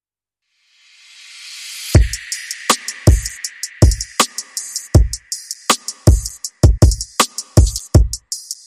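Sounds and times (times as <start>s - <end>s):
low beat: 2.0s - 8.2s.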